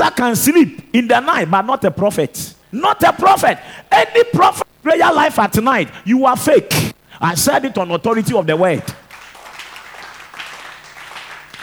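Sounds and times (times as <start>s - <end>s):
speech: 0.0s - 9.0s
audience clapping: 9.0s - 11.6s.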